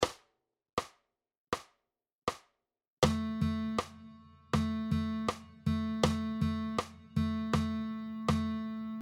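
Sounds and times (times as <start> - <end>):
guitar playing rhythm dictation exercises: 3.0 - 9.0.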